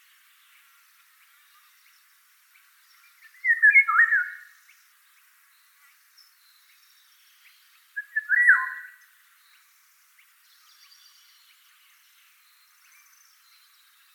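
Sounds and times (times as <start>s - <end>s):
Eurasian golden oriole whistling: 8.0s - 8.9s.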